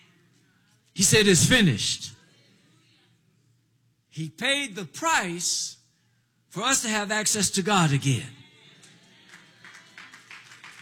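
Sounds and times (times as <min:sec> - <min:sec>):
speech: 0:01.0 - 0:02.2, 0:04.2 - 0:05.8, 0:06.5 - 0:08.4
audience clapping slowly: 0:08.8 - 0:10.8.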